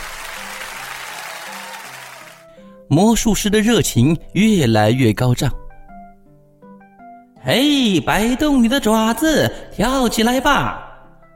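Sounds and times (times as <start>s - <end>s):
audience applause and cheering: 0.0s - 2.5s
speech: 2.9s - 5.6s, 7.4s - 10.9s.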